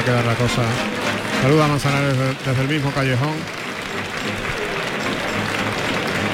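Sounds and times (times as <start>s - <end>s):
speech: 0.0s - 3.6s, 4.2s - 4.5s
bullring crowd applause for a bullfighter from Alicante: 0.0s - 6.3s.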